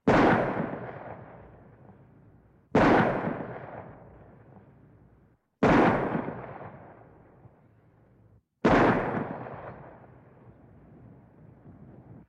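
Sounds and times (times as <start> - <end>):
pistol shots outside at medium distance: 0.0 - 1.5, 2.7 - 4.1, 5.6 - 7.0, 8.6 - 10.1.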